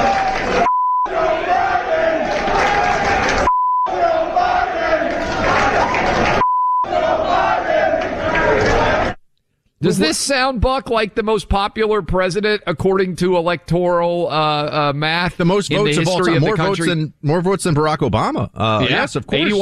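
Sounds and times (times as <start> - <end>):
fans in crowds chanting: 0.0 - 9.2
censor bleeps over chants: 0.7 - 1.1, 3.5 - 3.9, 6.4 - 6.9
speech: 9.9 - 19.6.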